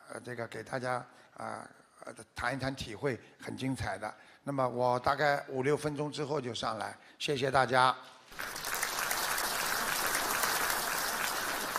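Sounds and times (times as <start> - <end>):
speech: 0.2 - 8.7
audience applause: 8.3 - 11.7.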